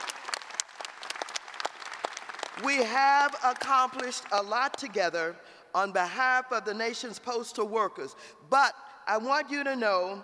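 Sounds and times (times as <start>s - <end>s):
audience applause for the union president at a letter carriers' convention: 0.0s - 2.6s
speech: 2.6s - 10.2s.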